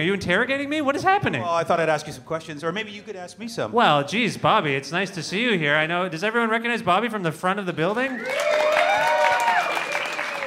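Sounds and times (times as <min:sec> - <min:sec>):
speech: 0:00.0 - 0:08.8
audience applause: 0:08.0 - 0:10.4.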